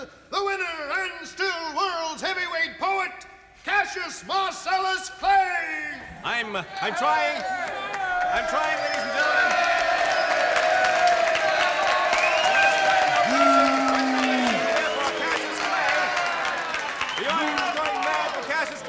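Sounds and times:
speech: 0.0s - 9.8s
crowd applauding: 7.2s - 18.8s.

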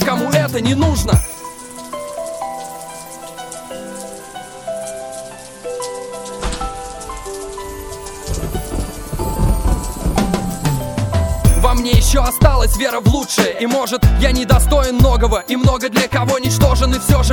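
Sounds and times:
raindrops pattering: 0.0s - 17.3s
speech: 0.5s - 1.3s, 12.1s - 17.3s
sustained musical tones: 1.2s - 13.0s.

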